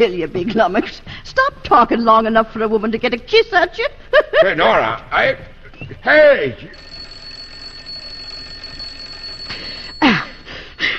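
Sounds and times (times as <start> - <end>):
speech: 0.0 - 7.0
doorbell ringing: 6.7 - 10.9.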